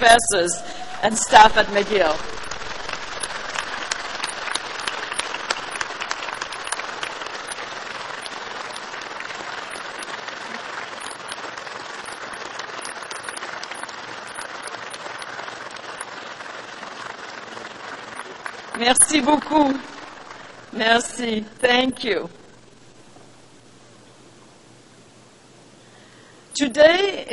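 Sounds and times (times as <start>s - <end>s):
speech: 0.0s - 2.5s, 19.2s - 19.9s, 20.7s - 22.4s, 26.6s - 27.3s
graduates applauding: 1.4s - 20.8s.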